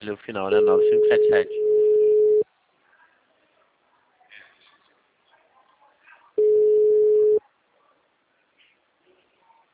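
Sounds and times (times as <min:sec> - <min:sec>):
speech: 0:00.0 - 0:01.7
telephone ringback tone of an unanswered call: 0:00.6 - 0:02.4, 0:06.4 - 0:07.4.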